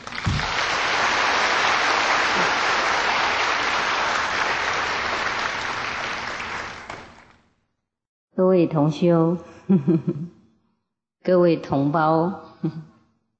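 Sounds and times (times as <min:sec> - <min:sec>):
audience applause: 0:00.0 - 0:07.3
speech: 0:08.5 - 0:10.4, 0:11.2 - 0:12.9.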